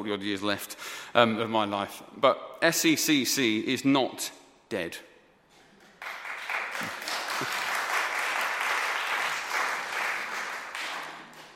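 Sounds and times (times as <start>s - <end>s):
speech: 0.0s - 5.1s
audience applauding: 6.0s - 11.5s.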